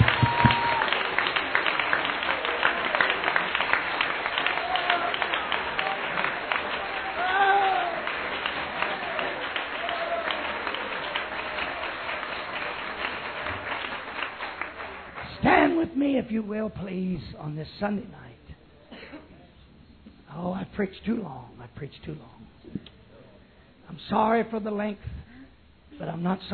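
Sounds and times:
audience clapping: 0.0s - 16.0s
speech: 16.2s - 18.2s, 20.8s - 22.4s, 24.1s - 25.1s, 26.0s - 26.5s.

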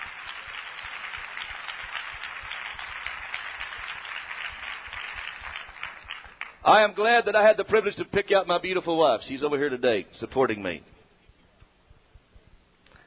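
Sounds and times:
audience hand clapping: 0.0s - 6.8s
speech: 6.6s - 10.9s.

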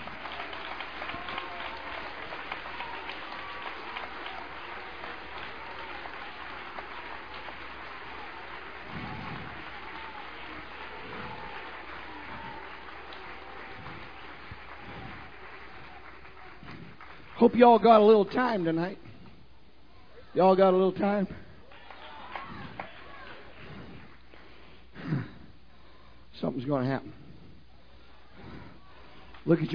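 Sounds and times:
faint cheers: 0.0s - 17.7s, 21.4s - 24.0s
crowd applauding: 0.0s - 19.3s, 21.0s - 25.3s
speech: 17.4s - 19.0s, 20.4s - 21.4s, 26.7s - 27.2s, 29.5s - 29.7s.

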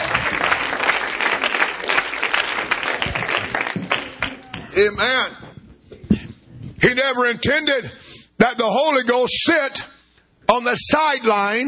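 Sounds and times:
crowd clapping hands: 0.0s - 4.9s
speech: 4.8s - 5.4s, 6.8s - 9.9s, 10.5s - 11.6s.

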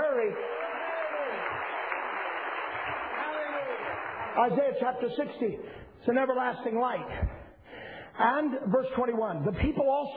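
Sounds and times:
audience clapping hands: 0.0s - 5.4s
speech: 4.4s - 7.4s, 8.2s - 10.1s.

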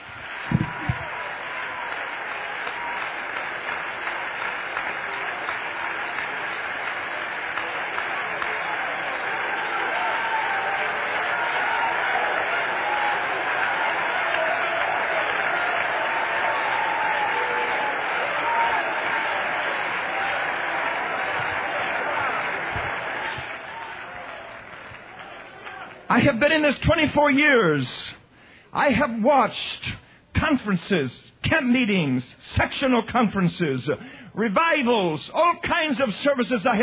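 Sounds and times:
audience clapping: 0.0s - 26.7s
speech: 26.2s - 28.2s, 28.8s - 36.8s.

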